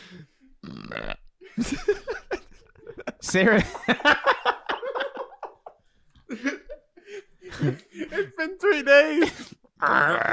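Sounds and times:
speech: 0:00.1 - 0:00.3, 0:01.6 - 0:02.0, 0:03.3 - 0:03.9
voice imitating croaking sound in throat: 0:00.6 - 0:01.4, 0:09.8 - 0:10.3
laughter: 0:01.4 - 0:09.5.

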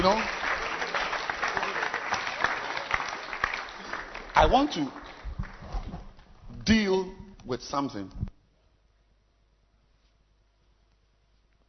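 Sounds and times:
speech: 0:00.0 - 0:00.4, 0:04.4 - 0:05.0, 0:06.7 - 0:08.2
audience clapping at a gathering: 0:00.0 - 0:06.3.

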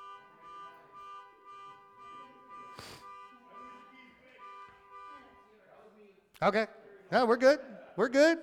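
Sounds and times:
car alarm going off outside: 0:00.0 - 0:05.4
speech: 0:06.4 - 0:08.4.

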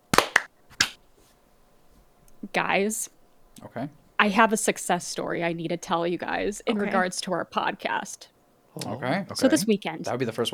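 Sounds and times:
sharp hand claps for audio sync: 0:00.1 - 0:01.0
speech: 0:02.4 - 0:10.5.

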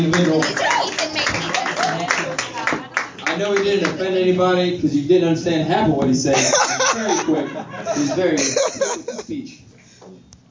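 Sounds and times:
speech: 0:00.0 - 0:01.4, 0:03.4 - 0:09.4
audience clapping: 0:00.0 - 0:04.1
laughter: 0:01.4 - 0:03.8, 0:06.3 - 0:09.4.

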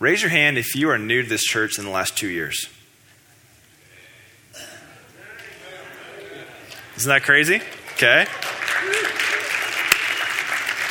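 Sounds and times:
speech: 0:00.0 - 0:02.8, 0:07.0 - 0:09.0
audience applause: 0:05.3 - 0:10.8.

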